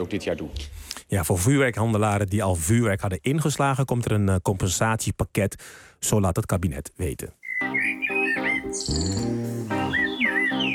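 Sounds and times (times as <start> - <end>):
speech: 0.0 - 7.4, 8.7 - 9.8
blackbird singing: 7.4 - 10.7.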